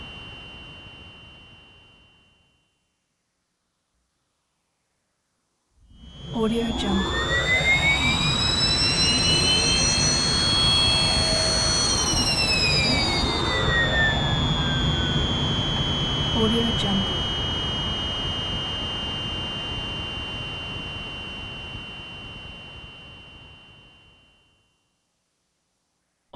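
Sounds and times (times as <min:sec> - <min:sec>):
synth wind up: 0:06.0 - 0:24.1
jet flying by: 0:06.2 - 0:17.8.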